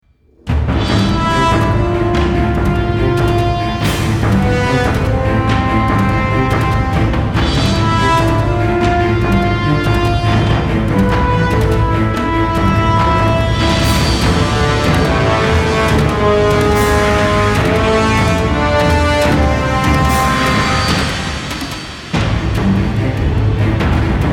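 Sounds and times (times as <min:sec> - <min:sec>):
battle music in A minor: 0:00.3 - 0:24.3.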